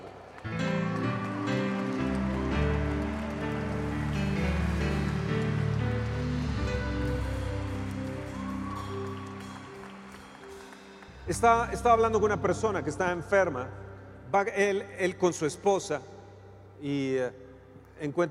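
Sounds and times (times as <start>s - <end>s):
large crowd applauding: 0.0s - 11.7s
sustained keyboard or organ chords: 0.0s - 14.7s
speech: 11.3s - 16.1s, 16.8s - 17.4s, 18.0s - 18.3s.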